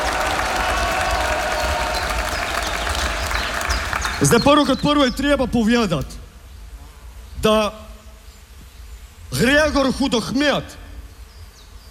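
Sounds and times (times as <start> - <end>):
party members applauding at a picnic in the shade: 0.0 - 4.8
speech: 4.2 - 6.2, 7.4 - 7.8, 9.3 - 10.8.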